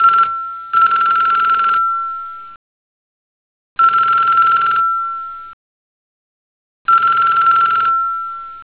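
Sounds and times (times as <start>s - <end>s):
telephone: 0.0s - 1.9s, 3.8s - 4.9s, 6.9s - 8.6s.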